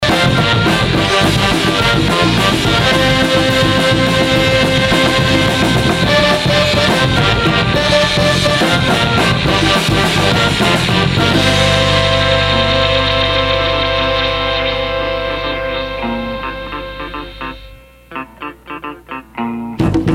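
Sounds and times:
brass outro: 0.0s - 20.0s.

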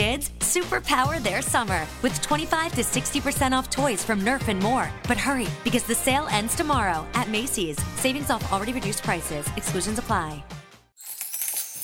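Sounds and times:
speech: 0.2s - 10.6s
coins dropping and rattling: 11.0s - 11.8s.

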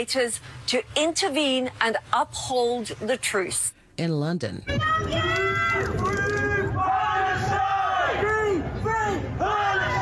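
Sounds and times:
speech: 0.0s - 6.3s
crowd cheering: 4.8s - 10.0s.

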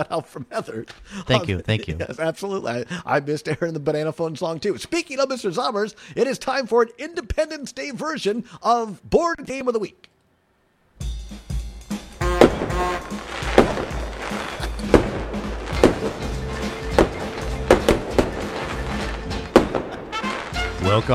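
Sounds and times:
speech: 0.0s - 10.1s, 20.9s - 21.1s
fireworks exploding: 12.0s - 21.1s.

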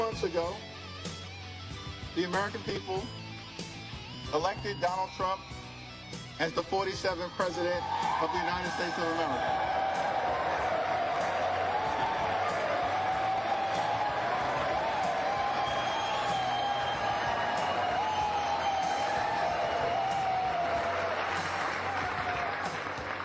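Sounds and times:
speech: 0.2s - 0.7s, 2.2s - 3.2s, 4.3s - 5.6s, 6.4s - 9.8s
audience cheering and whoops: 7.5s - 23.2s
audience applause: 7.8s - 23.2s.

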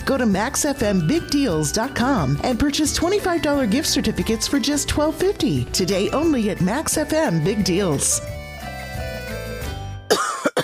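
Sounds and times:
speech: 0.1s - 8.4s
person coughing: 10.1s - 10.6s.

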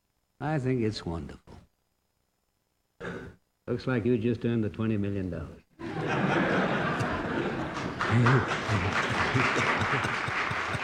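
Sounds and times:
speech: 0.4s - 1.5s, 3.7s - 6.4s, 8.1s - 10.4s
laughter: 5.8s - 10.8s
applause in a Senate hearing room: 7.4s - 10.8s.

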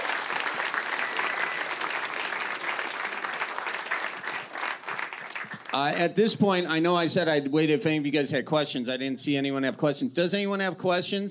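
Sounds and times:
audience applause: 0.0s - 6.0s
speech: 5.7s - 11.2s.

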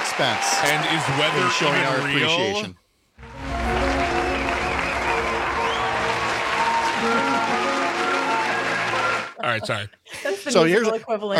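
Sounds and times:
canned applause sound effect: 0.0s - 2.4s, 3.2s - 9.4s
speech: 0.2s - 2.8s, 9.4s - 11.3s.

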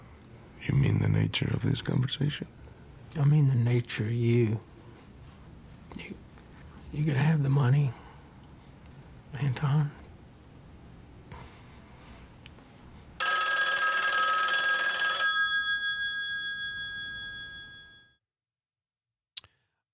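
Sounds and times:
speech: 0.6s - 4.7s, 6.9s - 8.0s, 9.3s - 10.0s
telephone ringing: 13.2s - 18.2s.

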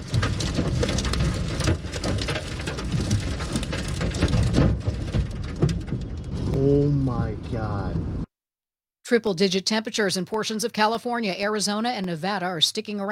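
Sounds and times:
heavy rain in a tornado storm: 0.0s - 8.2s
low rumbling swells: 0.0s - 8.3s
speech: 6.6s - 8.2s, 9.1s - 13.1s.

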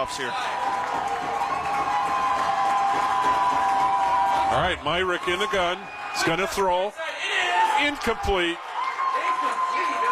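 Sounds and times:
speech: 0.0s - 1.2s, 4.5s - 7.0s, 7.8s - 8.6s
large stadium crowd cheering loudly: 0.0s - 10.0s.

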